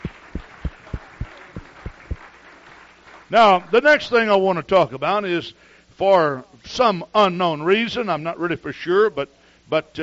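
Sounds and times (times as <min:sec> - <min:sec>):
audience clapping hands: 0:00.0 - 0:03.8
speech: 0:03.3 - 0:10.0.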